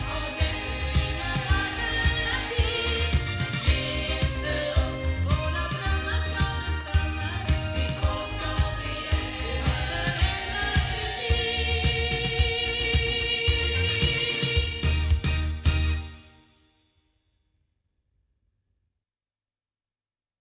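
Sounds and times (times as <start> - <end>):
loudspeakers: 0.0 - 15.9.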